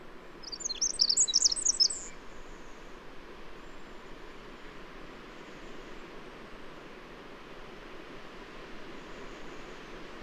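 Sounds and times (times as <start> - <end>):
low background hiss: 0.0 - 10.2
bird song of high twittering notes: 0.4 - 2.1.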